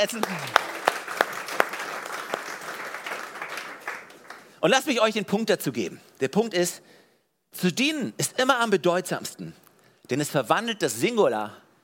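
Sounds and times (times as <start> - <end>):
speech: 0.0 - 0.7, 4.6 - 6.9, 7.5 - 11.6
audience applause: 0.0 - 4.6.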